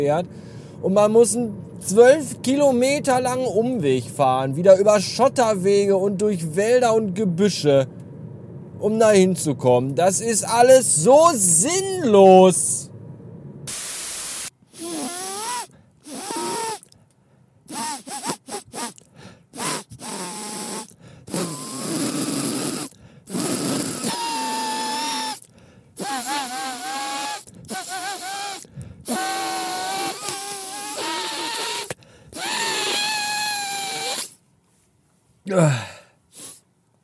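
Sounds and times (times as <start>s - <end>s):
speech: 0.0s - 8.0s, 8.8s - 12.9s
blocked nose clicking: 14.8s - 34.4s.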